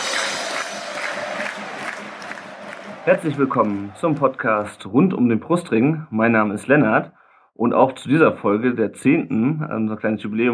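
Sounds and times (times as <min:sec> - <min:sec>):
football fans cheering: 0:00.0 - 0:05.3
speech: 0:03.1 - 0:10.5.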